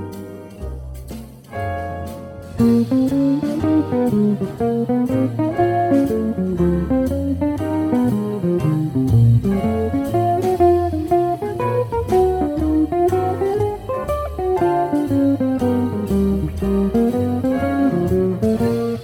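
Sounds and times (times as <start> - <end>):
musical lick: 0.1 - 19.0.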